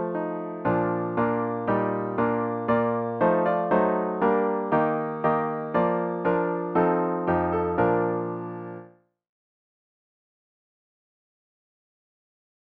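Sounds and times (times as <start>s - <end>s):
solo piano: 0.0s - 9.0s.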